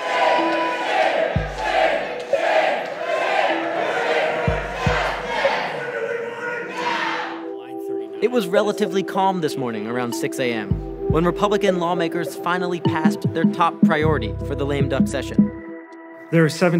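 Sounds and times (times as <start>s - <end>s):
protest crowd chanting at state capitol: 0.0s - 7.5s
speech: 8.2s - 15.4s, 16.3s - 16.7s.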